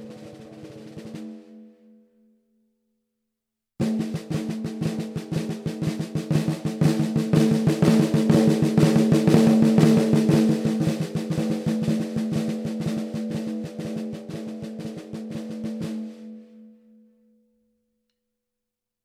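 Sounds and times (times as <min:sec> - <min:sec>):
14x65 oak snare drum: 0:00.0 - 0:01.5, 0:03.8 - 0:16.4.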